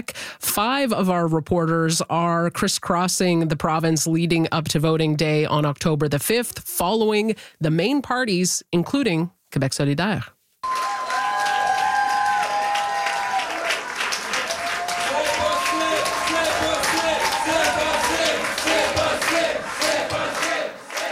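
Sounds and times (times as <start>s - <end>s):
speech: 0.0s - 10.4s
Québec solidaire supporters cheering at campaign headquarters in Quebec City: 10.6s - 21.1s
voices chanting: 14.9s - 21.1s.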